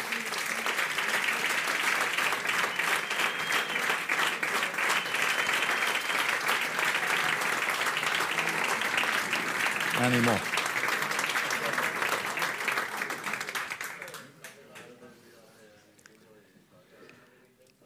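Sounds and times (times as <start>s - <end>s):
audience applause: 0.0s - 14.4s
speech: 10.0s - 10.5s.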